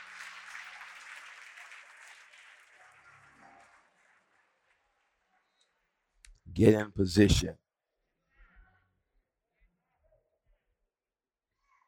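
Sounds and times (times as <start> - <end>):
audience hand clapping: 0.0 - 4.8
speech: 6.5 - 7.6.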